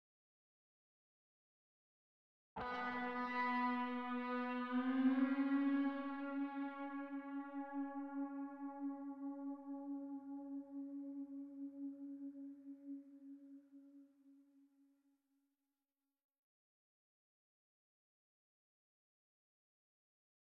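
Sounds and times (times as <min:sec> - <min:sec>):
guitar music: 0:02.6 - 0:13.6.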